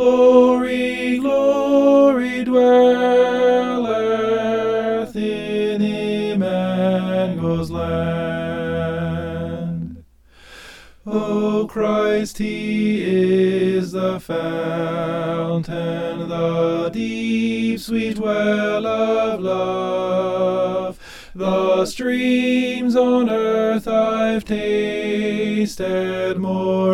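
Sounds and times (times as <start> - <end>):
soprano singing: 0.0 - 10.0, 11.1 - 26.9.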